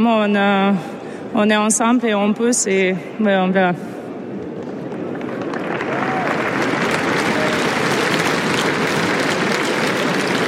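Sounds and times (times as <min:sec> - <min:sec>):
speech: 0:00.0 - 0:04.0
stadium crowd applauding: 0:04.9 - 0:10.4.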